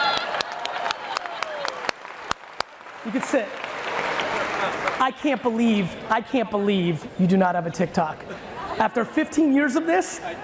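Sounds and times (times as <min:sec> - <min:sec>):
audience applause: 0:00.0 - 0:05.0
speech: 0:03.0 - 0:10.4.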